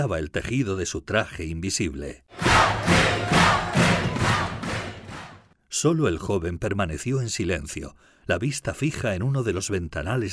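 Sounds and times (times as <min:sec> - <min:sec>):
speech: 0:00.0 - 0:02.4, 0:05.8 - 0:10.3
crowd bursting into cheers of joy: 0:02.3 - 0:05.5.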